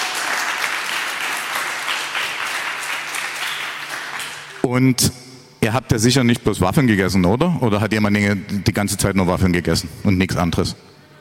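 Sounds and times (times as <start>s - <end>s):
audience applause: 0.0s - 4.6s
speech: 4.6s - 10.9s.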